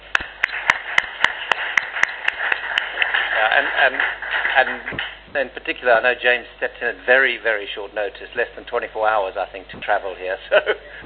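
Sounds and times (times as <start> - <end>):
audience applause: 0.0 - 5.3
speech: 3.6 - 11.0.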